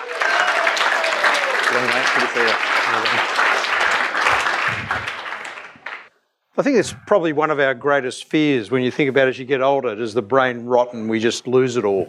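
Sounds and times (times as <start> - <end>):
voices calling out or cheering: 0.0 - 6.0
large crowd applauding loudly: 0.0 - 6.1
speech: 1.8 - 3.7, 6.6 - 12.0.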